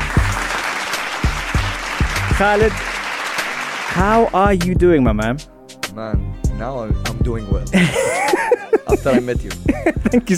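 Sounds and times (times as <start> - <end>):
audience applause: 0.0 - 4.1
speech: 2.4 - 3.0, 3.9 - 10.3
laughter: 7.8 - 10.3.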